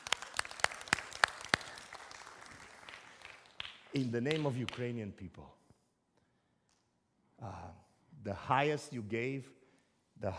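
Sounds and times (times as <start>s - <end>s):
small group clapping: 0.0s - 5.0s
speech: 3.9s - 5.6s, 7.4s - 9.6s, 10.2s - 10.3s.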